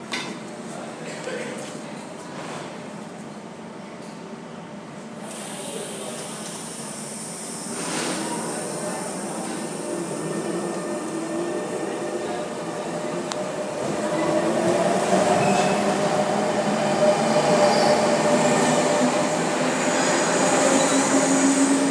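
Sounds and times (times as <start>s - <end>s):
train station ambience in Paris: 0.0s - 21.9s.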